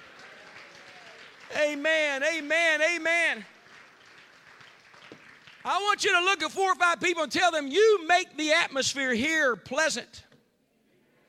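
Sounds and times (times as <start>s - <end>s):
audience clapping hands: 0.0s - 6.2s
speech: 1.5s - 3.6s, 5.6s - 10.3s.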